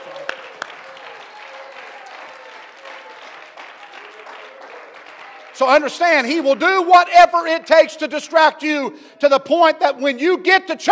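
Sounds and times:
audience clapping hands: 0.0s - 6.9s
speech: 5.6s - 10.9s.

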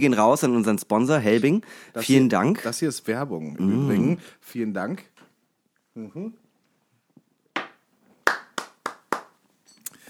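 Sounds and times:
speech: 0.0s - 5.1s, 6.0s - 6.4s
hand clapping: 7.6s - 9.4s.

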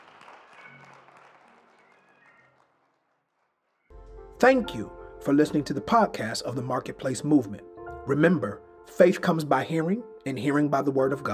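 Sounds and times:
audience clapping: 0.0s - 3.9s
speech: 4.4s - 11.3s.

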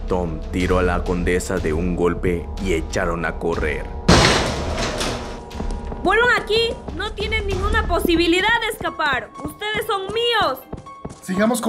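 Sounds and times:
speech: 0.1s - 4.0s, 6.0s - 11.6s
door opening: 4.1s - 5.7s.

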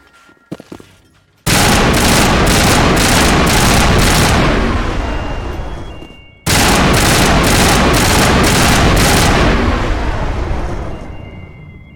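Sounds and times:
video game automatic gunfire at power junctions: 1.5s - 4.8s, 6.5s - 10.0s
video game single gunshots: 1.5s - 5.4s, 6.5s - 10.8s.

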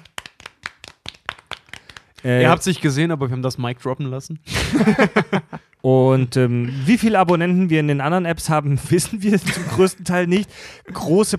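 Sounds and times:
hosts clapping: 0.0s - 3.0s
speech: 2.2s - 11.3s
laughter: 4.5s - 5.7s, 9.1s - 10.0s.

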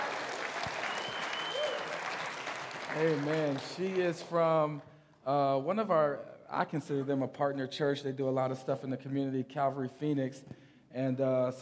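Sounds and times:
church congregation clapping for a guest worship leader: 0.0s - 4.8s
speech: 2.9s - 11.6s.

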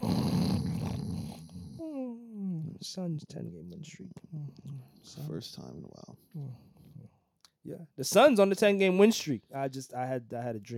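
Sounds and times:
snoring: 0.0s - 2.0s
speech: 2.8s - 6.7s, 7.6s - 10.7s.

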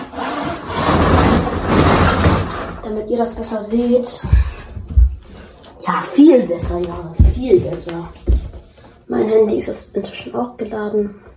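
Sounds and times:
roller shutter being lowered: 0.0s - 2.9s
speech: 2.9s - 4.5s, 5.8s - 8.3s, 9.1s - 11.3s.

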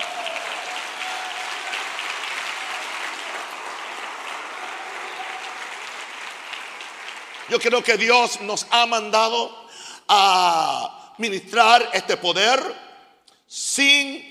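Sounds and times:
loud applause from audience: 0.0s - 8.1s
speech: 7.5s - 12.9s, 13.5s - 14.2s.

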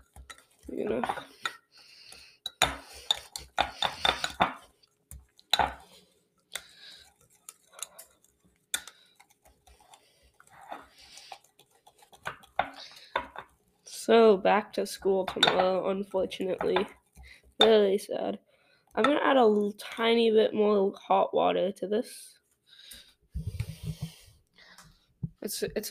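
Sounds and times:
batter being whisked in a bowl: 0.0s - 1.6s, 2.4s - 13.6s
speech: 0.7s - 1.3s, 14.1s - 17.0s, 17.6s - 22.4s, 25.5s - 25.9s.

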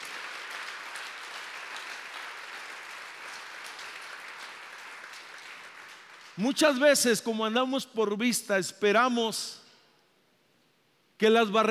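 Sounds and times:
audience applause: 0.0s - 6.4s
speech: 6.4s - 9.6s, 11.2s - 11.6s.

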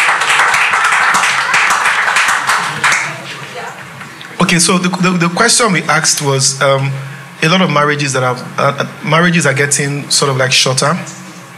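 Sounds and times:
crowd clapping: 0.0s - 4.5s
speech: 4.5s - 11.2s.

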